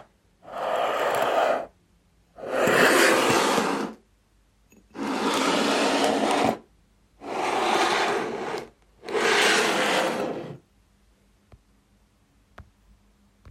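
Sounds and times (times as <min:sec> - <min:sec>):
glass tumbler sliding on wooden table: 0:00.5 - 0:01.7, 0:02.4 - 0:04.0, 0:04.9 - 0:06.6, 0:07.2 - 0:10.6.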